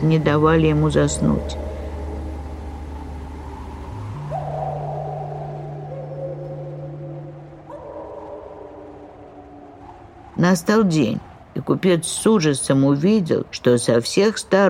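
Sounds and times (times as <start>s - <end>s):
speech: 0.0s - 1.7s, 10.4s - 14.6s
wolf howls in a cold snowy forest: 0.0s - 12.5s
steady low droning hum of wind: 0.0s - 14.6s.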